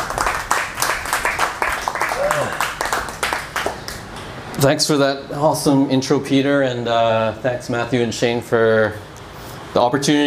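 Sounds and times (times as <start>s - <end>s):
room full of people applauding: 0.0s - 4.2s
faint voices and cheers: 2.1s - 2.6s
speech: 4.6s - 9.1s, 9.8s - 10.2s.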